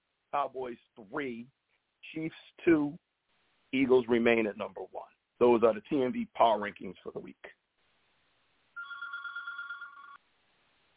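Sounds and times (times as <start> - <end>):
speech: 0.3 - 3.0, 3.7 - 7.6
electronic telephone ring from an incoming call: 8.8 - 10.2.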